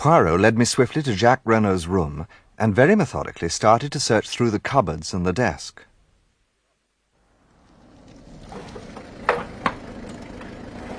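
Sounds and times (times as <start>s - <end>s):
speech: 0.0s - 5.9s
car driving up: 7.2s - 10.9s.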